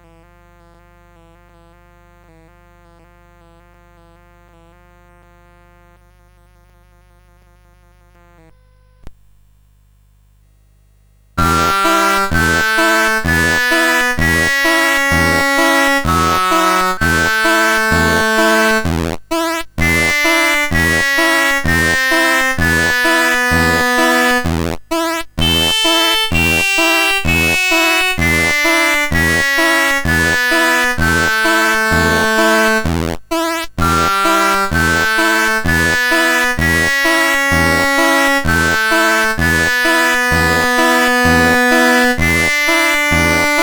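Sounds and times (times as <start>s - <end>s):
swing music: 11.4s - 19.2s, 19.8s - 24.6s, 25.4s - 33.0s, 33.8s - 43.6s.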